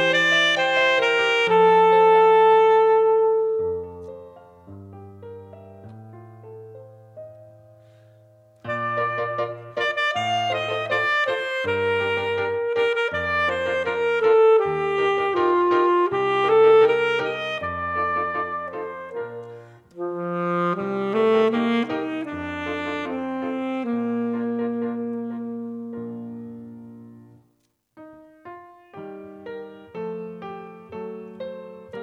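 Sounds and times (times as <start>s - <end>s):
saxophone: 0.0s - 4.3s, 8.6s - 26.9s.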